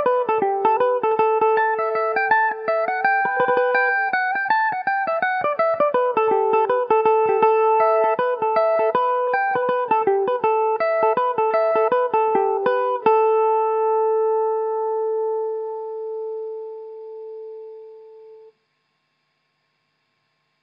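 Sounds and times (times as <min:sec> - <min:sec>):
mandolin playing a reel: 0:00.0 - 0:15.5.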